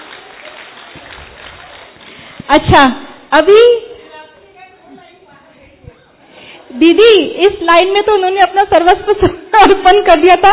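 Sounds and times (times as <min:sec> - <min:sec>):
audience applause: 0:00.0 - 0:02.5
speech: 0:02.5 - 0:03.9, 0:06.8 - 0:10.5.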